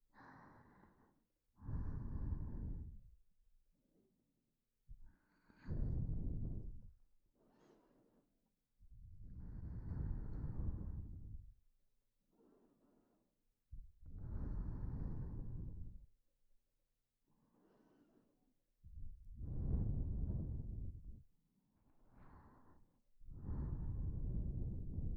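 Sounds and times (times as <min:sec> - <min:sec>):
person breathing in sleep: 0:00.1 - 0:03.2, 0:05.0 - 0:08.3, 0:09.0 - 0:11.6, 0:12.3 - 0:16.1, 0:17.4 - 0:21.3, 0:22.0 - 0:25.1.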